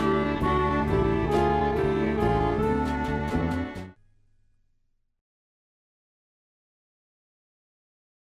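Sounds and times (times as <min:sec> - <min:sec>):
instrumental music: 0:00.0 - 0:04.4.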